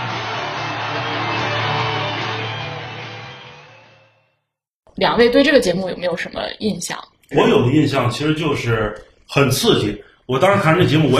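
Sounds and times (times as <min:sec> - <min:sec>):
audience applause welcoming guests: 0:00.0 - 0:03.9
speech: 0:05.0 - 0:11.1.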